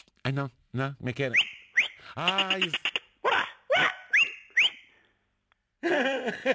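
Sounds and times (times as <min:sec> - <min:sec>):
speech: 0:00.3 - 0:01.5, 0:02.1 - 0:02.9, 0:05.8 - 0:06.5
shepherd's whistle blasts calling the flock: 0:01.2 - 0:03.1, 0:03.7 - 0:05.0
laughter: 0:05.8 - 0:06.5.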